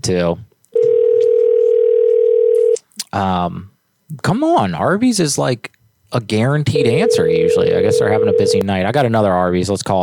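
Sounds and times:
speech: 0.0s - 0.5s, 3.1s - 10.0s
telephone dial tone: 0.8s - 2.8s.

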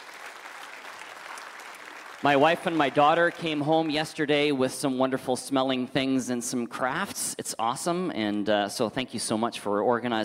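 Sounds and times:
audience applause: 0.0s - 4.2s
speech: 2.2s - 10.2s.

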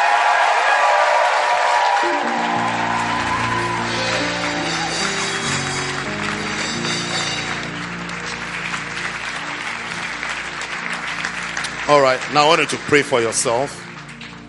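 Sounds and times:
audience applause, hand clapping: 0.0s - 14.4s
speech: 11.9s - 13.8s.

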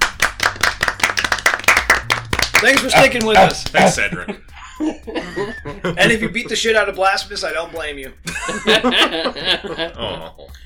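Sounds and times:
round of applause: 0.0s - 3.8s
laughter: 2.2s - 6.5s, 8.2s - 10.5s
speech: 2.6s - 10.6s.

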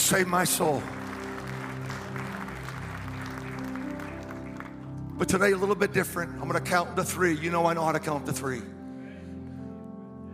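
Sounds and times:
audience clapping: 0.0s - 5.8s
speech: 0.1s - 1.0s, 5.2s - 8.8s
sustained low musical tone: 0.3s - 8.9s.

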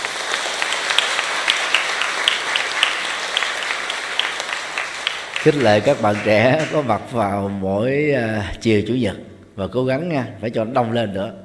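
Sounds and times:
audience clapping at a teacher's Sunday afternoon gathering for young people: 0.0s - 7.2s
speech: 5.4s - 11.4s.

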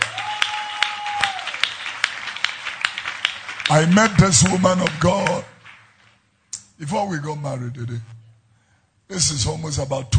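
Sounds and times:
audience clapping hands: 0.0s - 6.3s
speech: 3.7s - 5.5s, 6.8s - 8.2s, 9.1s - 10.1s.

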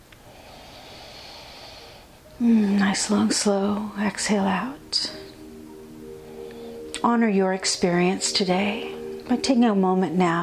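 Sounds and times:
deep inhale: 0.2s - 2.6s, 6.2s - 6.9s
speech: 2.4s - 5.3s, 7.0s - 10.4s.

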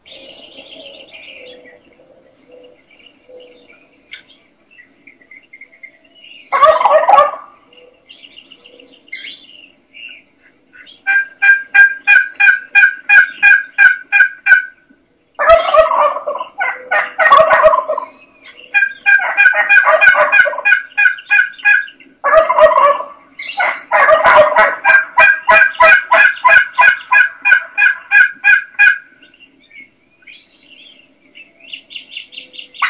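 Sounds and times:
wild turkey gobbling at an early morning roost: 0.0s - 30.4s, 32.6s - 32.8s
rapid evenly spaced run of sharp calls: 0.0s - 32.8s.

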